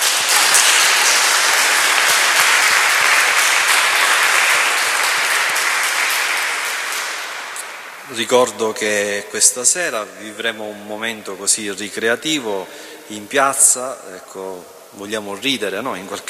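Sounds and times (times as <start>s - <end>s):
audience applause: 0.0s - 8.0s
speech: 8.2s - 16.2s.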